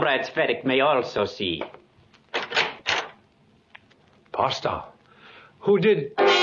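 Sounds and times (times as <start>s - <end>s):
speech: 0.0s - 1.8s, 4.4s - 4.9s, 5.6s - 6.3s
door opening: 2.3s - 3.2s.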